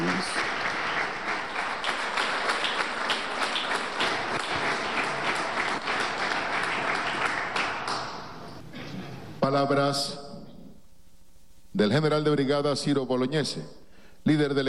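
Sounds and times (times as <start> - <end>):
applause: 0.0 - 8.5
speech: 9.6 - 10.2, 11.8 - 14.6.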